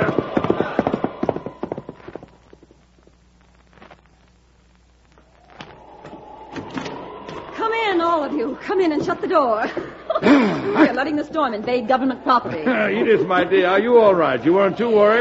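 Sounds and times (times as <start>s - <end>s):
horse hooves clip-clopping: 0.0s - 2.7s
laughter: 7.9s - 13.9s
speech: 8.6s - 15.1s.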